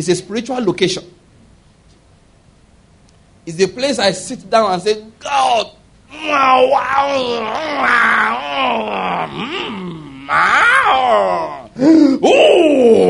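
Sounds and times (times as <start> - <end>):
speech: 0.0 - 1.2, 3.4 - 13.0
preacher moaning a wordless prayerful groan: 5.3 - 13.0.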